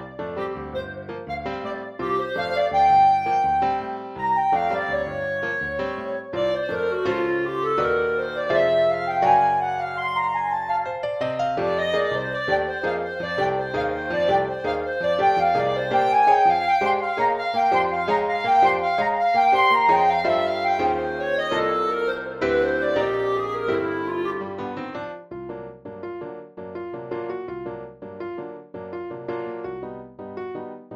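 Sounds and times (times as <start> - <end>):
MIDI piano duo: 0.0 - 30.9.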